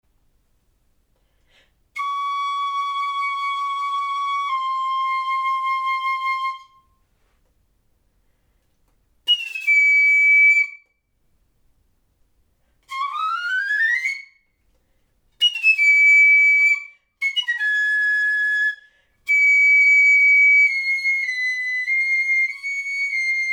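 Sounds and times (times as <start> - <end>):
piccolo: 1.9 - 7.0, 9.3 - 11.1, 12.8 - 14.6, 15.4 - 23.5.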